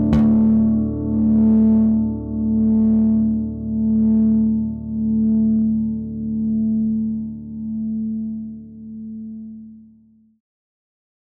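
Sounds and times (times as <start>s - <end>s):
active Precision Bass guitar with overdrive: 0.0s - 8.3s.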